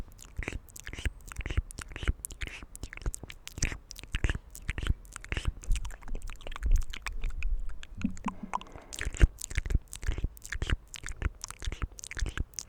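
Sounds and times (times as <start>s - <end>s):
wet mouth clicks, smacks and chewing-like crunches: 0.0s - 12.6s
hand sounds: 8.0s - 9.0s.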